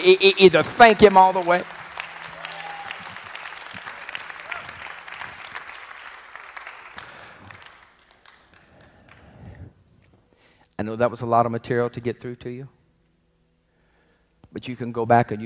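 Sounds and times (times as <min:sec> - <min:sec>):
speech: 0:00.0 - 0:01.8, 0:10.8 - 0:12.8, 0:14.5 - 0:15.4
audience clapping hands: 0:00.0 - 0:09.7.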